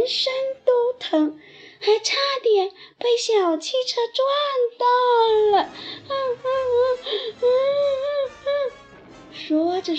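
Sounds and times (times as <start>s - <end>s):
speech: 1.1s - 8.8s, 9.4s - 9.9s
voice acting out tearful crying: 5.4s - 8.8s.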